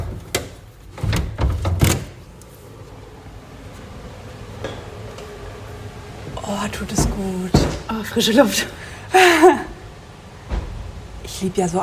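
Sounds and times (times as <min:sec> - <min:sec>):
door latch and handle rattling: 0:00.0 - 0:08.0
faint ambient hum: 0:00.0 - 0:11.8
speech: 0:06.5 - 0:09.7, 0:11.4 - 0:11.8.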